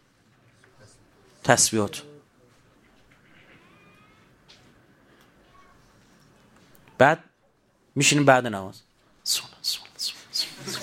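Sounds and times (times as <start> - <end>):
speech: 1.5 - 2.1, 7.0 - 7.3, 8.0 - 9.5
voice imitating chicks chirping: 9.3 - 10.8.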